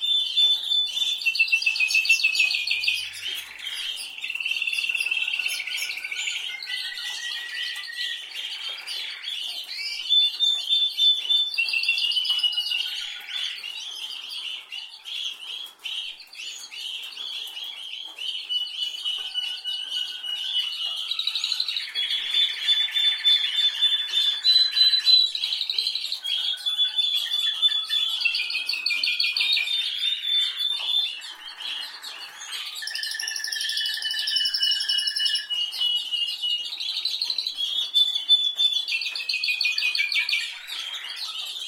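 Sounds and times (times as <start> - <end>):
canary singing: 0.0 - 41.6.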